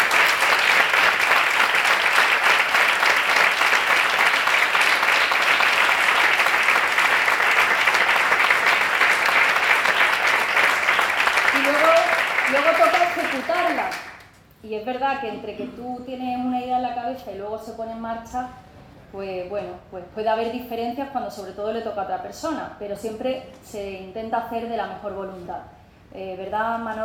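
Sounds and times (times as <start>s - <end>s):
audience applause: 0.0s - 14.3s
speech: 14.8s - 27.0s.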